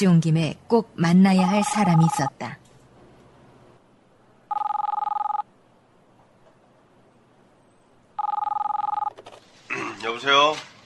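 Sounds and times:
speech: 0:00.0 - 0:02.6, 0:10.2 - 0:10.7
telephone ringing during an outgoing call: 0:01.5 - 0:02.3, 0:04.5 - 0:05.5, 0:08.2 - 0:09.2.

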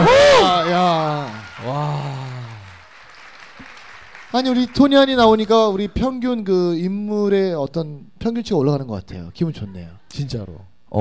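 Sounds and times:
audience applause: 0:00.6 - 0:05.6
speech: 0:04.3 - 0:10.9.

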